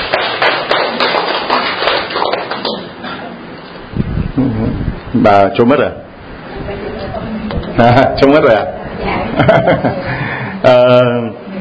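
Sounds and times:
audience applause: 0.0 - 3.0
speech: 4.4 - 6.0, 7.8 - 11.3
laughter: 9.2 - 10.5.

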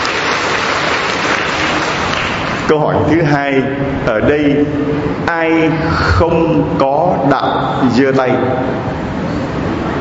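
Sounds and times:
audience applause: 0.0 - 2.6
speech: 2.7 - 9.0.

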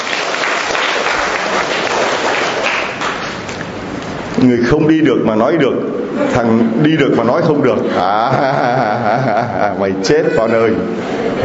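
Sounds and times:
audience applauding a volunteer: 0.0 - 3.6
speech: 4.4 - 11.4
laughter: 6.1 - 6.7, 7.5 - 11.4.

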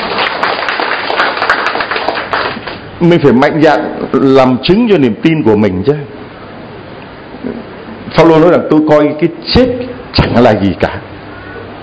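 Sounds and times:
church congregation applauding: 0.0 - 2.9
speech: 3.0 - 6.2, 8.2 - 11.1.

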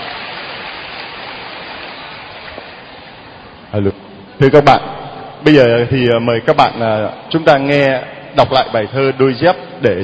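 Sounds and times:
audience applause: 0.0 - 3.3
speech: 3.7 - 10.0.

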